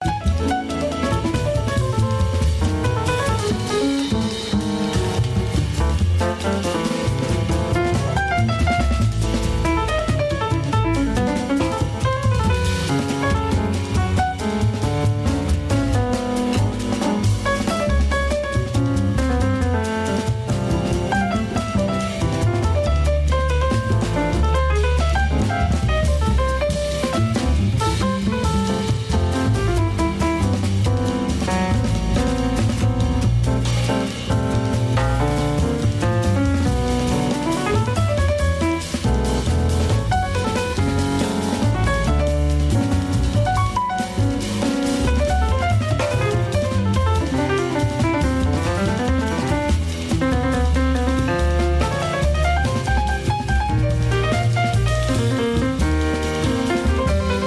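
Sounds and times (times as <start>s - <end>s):
jazz music: 0.0s - 57.4s.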